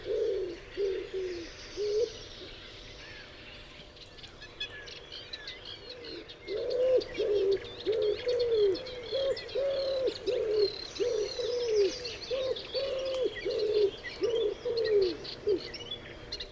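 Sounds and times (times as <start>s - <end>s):
common wood pigeon Columba palumbus cooing: 0.0s - 2.2s, 6.0s - 15.8s.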